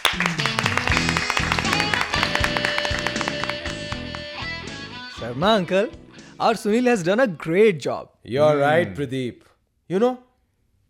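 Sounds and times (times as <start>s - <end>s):
applause, hands clapping: 0.0s - 4.9s
speech: 0.1s - 0.5s, 5.2s - 10.3s.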